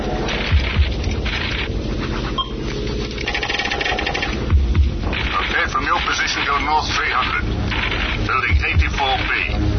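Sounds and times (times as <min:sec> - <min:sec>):
helicopter rotor: 0:00.0 - 0:01.8, 0:03.1 - 0:09.6.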